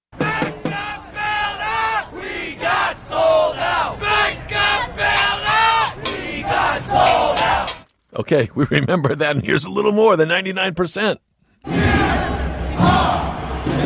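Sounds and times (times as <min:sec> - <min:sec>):
Occupy Wall Street protest crowd chanting in New York's financial district: 0:00.2 - 0:07.8, 0:11.6 - 0:13.8
speech: 0:08.2 - 0:11.9.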